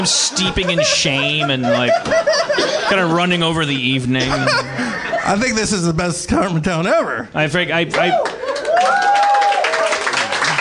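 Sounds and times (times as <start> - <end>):
laughter: 0.0 - 6.0
speech: 0.0 - 9.1
audience clapping: 7.8 - 10.5.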